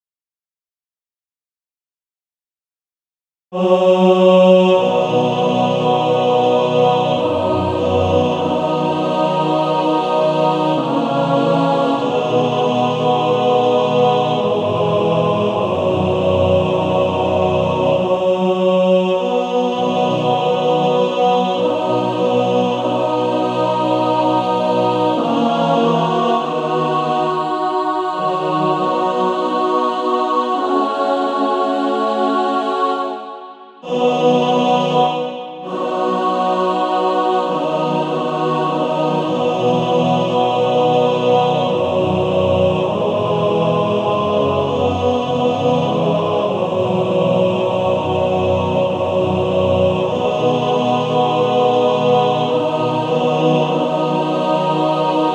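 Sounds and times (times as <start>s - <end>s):
male choir singing in four parts: 3.6s - 55.3s.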